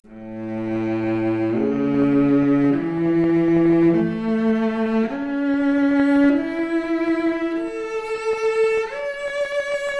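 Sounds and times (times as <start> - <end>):
noisy cello arpeggio: 0.0 - 9.9.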